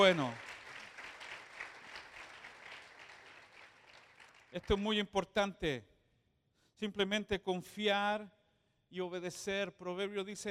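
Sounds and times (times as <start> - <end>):
speech: 0.0 - 0.5, 4.5 - 5.9, 6.8 - 10.4
crowd clapping: 0.0 - 5.0.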